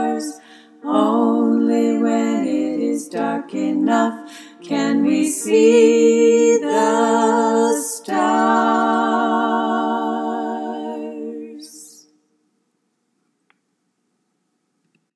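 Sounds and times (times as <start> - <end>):
choir singing all parts: 0.0 - 12.1.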